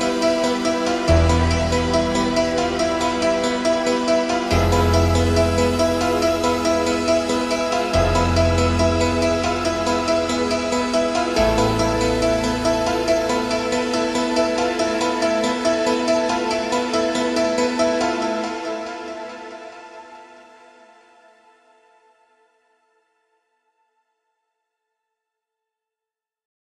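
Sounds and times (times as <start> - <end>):
sinister music: 0.0 - 20.4.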